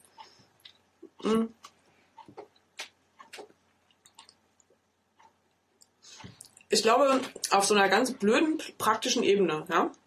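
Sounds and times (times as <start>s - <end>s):
chewing cheap supermarket gingerbread Lebkuchen: 0.0s - 6.7s
speech: 1.2s - 1.6s, 6.8s - 10.0s.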